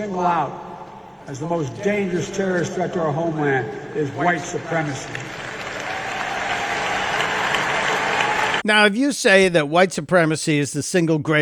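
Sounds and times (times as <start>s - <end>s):
speech: 0.0s - 0.7s, 1.3s - 5.5s, 8.6s - 11.3s
audience applause at a speech at a black college: 4.6s - 8.6s.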